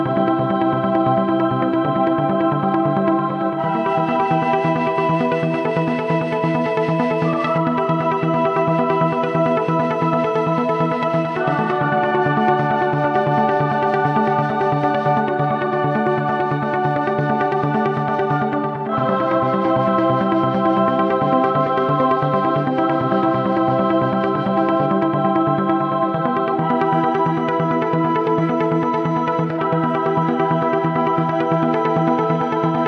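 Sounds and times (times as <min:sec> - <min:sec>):
Mellotron boys choir and flute: 0:00.0 - 0:32.8.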